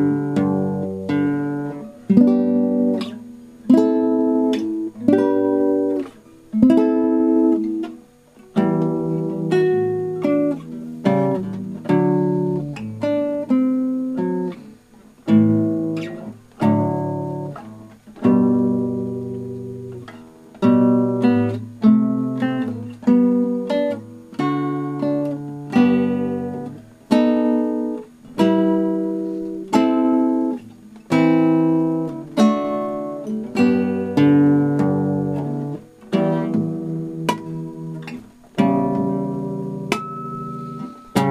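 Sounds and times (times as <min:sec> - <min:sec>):
baroque composition on guitar: 0:00.0 - 0:41.2.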